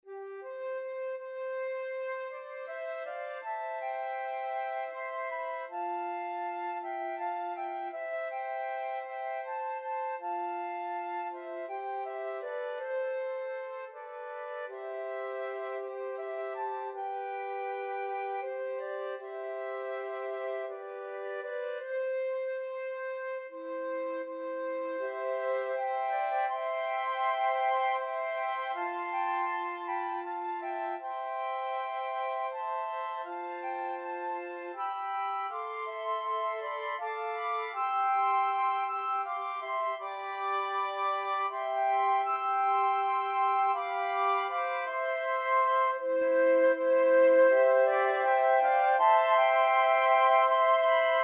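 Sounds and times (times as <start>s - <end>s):
flute quartet: 0.0s - 51.2s.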